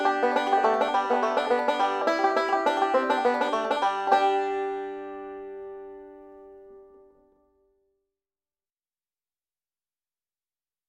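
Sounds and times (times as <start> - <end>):
banjo playing a Christmas carol: 0.0 - 7.3.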